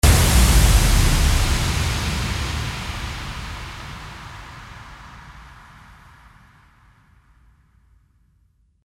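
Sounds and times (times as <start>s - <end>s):
impact: 0.0s - 6.6s.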